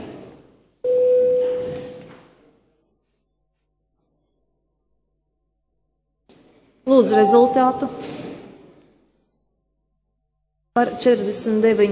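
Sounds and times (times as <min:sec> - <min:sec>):
speech: 0:06.9 - 0:08.1, 0:10.8 - 0:11.9
parliament electronic bell tone before a vote: 0:07.1 - 0:08.0.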